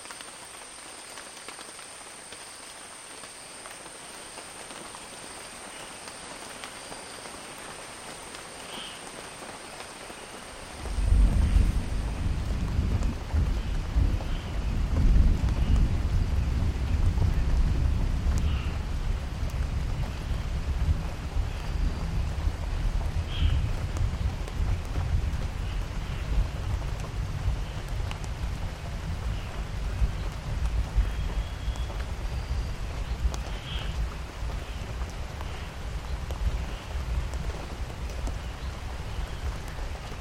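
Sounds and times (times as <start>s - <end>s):
rain falling on rainforest vegetation: 0.0s - 40.1s
deep heavy rumble: 10.8s - 32.2s.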